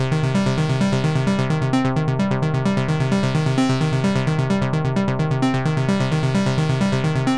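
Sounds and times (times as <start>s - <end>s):
trance synth loop: 0.0s - 7.3s.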